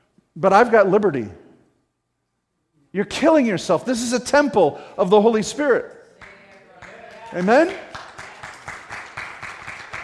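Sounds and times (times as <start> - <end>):
speech: 0.4 - 1.4, 2.9 - 6.0, 7.3 - 7.9
audience applauding: 6.2 - 10.0.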